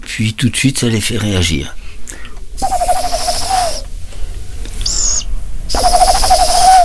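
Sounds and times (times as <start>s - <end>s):
speech: 0.2s - 1.8s
man imitating mother tawny owl hoots at a wildlife care centre: 2.6s - 3.9s, 4.8s - 6.8s.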